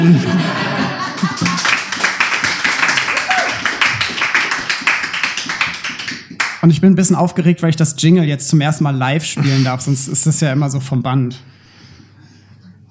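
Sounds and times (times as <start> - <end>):
speech: 0.0 - 0.7, 6.6 - 11.6
laughter: 0.0 - 2.2
live audience applauding: 0.7 - 6.6.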